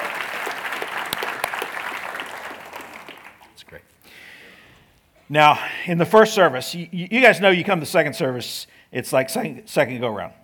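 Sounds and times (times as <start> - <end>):
audience applause: 0.0 - 3.8
speech: 5.3 - 10.4.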